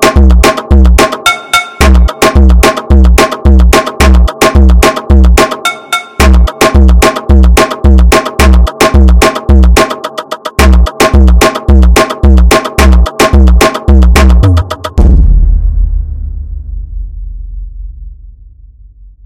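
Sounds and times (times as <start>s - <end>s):
slowed beat: 0.0s - 15.4s.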